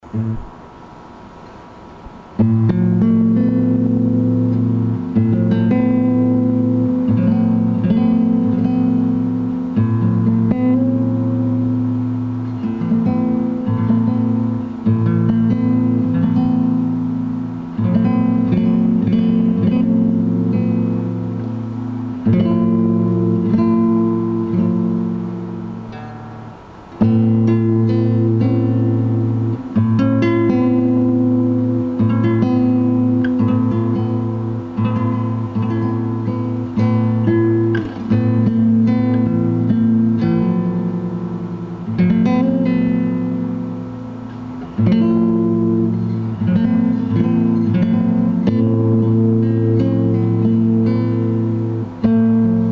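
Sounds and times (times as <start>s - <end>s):
guitar: 0.0s - 52.7s.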